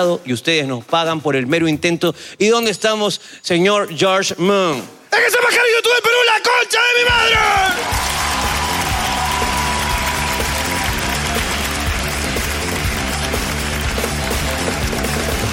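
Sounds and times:
speech: 0.0 - 8.2
audience applause: 7.5 - 15.5.

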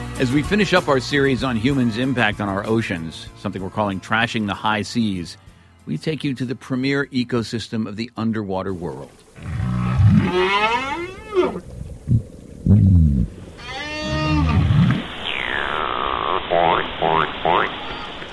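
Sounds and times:
speech: 0.2 - 10.9
short grunting pulses: 9.4 - 13.4
underwater whale calls: 9.4 - 17.8.

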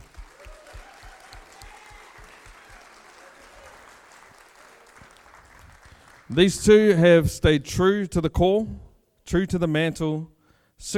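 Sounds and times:
audience applause: 0.0 - 6.5
speech: 6.3 - 10.9.

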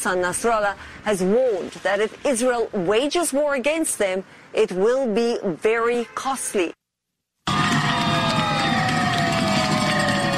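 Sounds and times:
speech: 0.0 - 6.8
teachers in Newton, Massachusetts cheering and shouting after their strike ends: 7.5 - 10.3.

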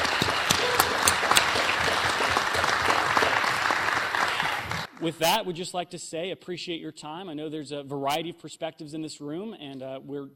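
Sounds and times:
audience round of applause: 0.0 - 5.2
speech: 5.0 - 10.3.

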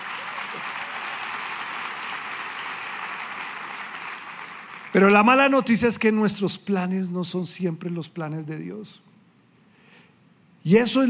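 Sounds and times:
audience applauding: 0.0 - 5.4
speech: 4.9 - 9.1, 10.6 - 11.0.

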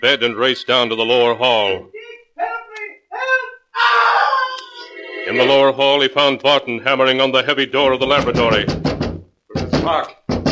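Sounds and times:
speech: 0.0 - 2.5, 5.3 - 8.9, 9.8 - 10.2
person screaming downstairs: 3.2 - 4.9.

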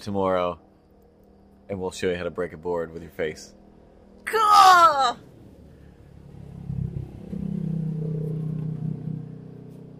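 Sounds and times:
speech: 0.0 - 0.7, 1.7 - 3.6, 4.2 - 5.3
car engine driving off: 5.2 - 9.9.

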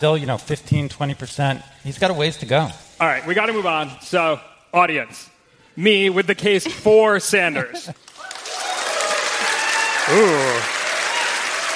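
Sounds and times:
speech: 0.0 - 8.1, 10.1 - 10.8
audience applause: 8.0 - 11.7.

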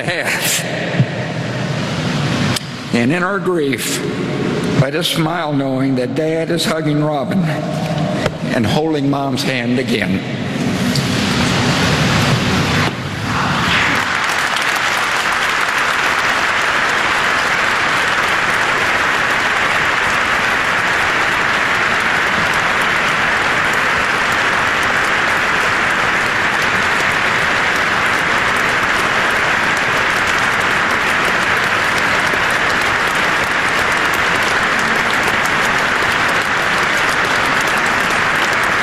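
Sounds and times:
speech: 0.0 - 1.4, 2.9 - 10.4
spontaneous applause at a funeral: 0.0 - 2.6, 11.0 - 38.8.

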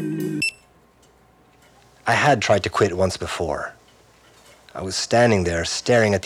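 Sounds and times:
kitchen equipment beeps: 0.0 - 0.7
speech: 2.1 - 3.8, 4.8 - 6.2.

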